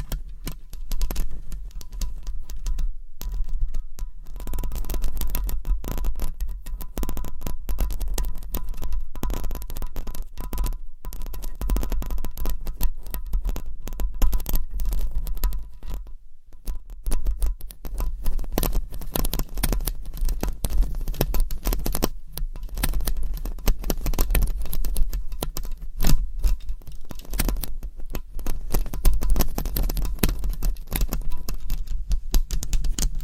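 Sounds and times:
long nails scratching and rubbing a microphone: 0.0 - 16.1, 16.7 - 33.2.

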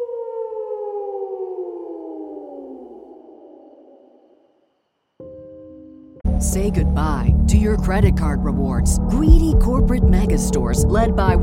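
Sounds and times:
distant howl: 0.0 - 4.8
speech: 6.4 - 11.4.

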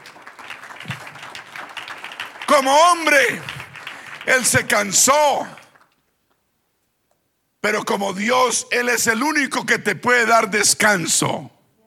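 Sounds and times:
audience applauding: 0.0 - 6.0
speech: 2.6 - 3.5, 4.2 - 5.6, 7.6 - 11.6.

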